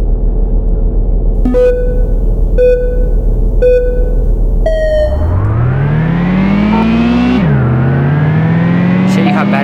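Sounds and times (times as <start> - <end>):
Audi Quattro race car idling in a racing video game: 0.0 - 7.5
countdown beeps: 1.4 - 5.7
Audi Quattro race car engine revving in a racing video game: 5.1 - 9.6.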